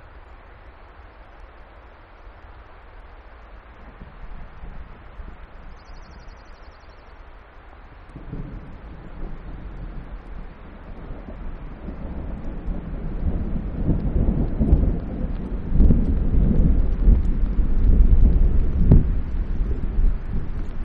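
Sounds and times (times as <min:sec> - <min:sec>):
thunderstorm onset in Alaska: 0:03.7 - 0:06.2, 0:08.0 - 0:20.8
Lapland longspur song in Alaska: 0:05.6 - 0:07.4.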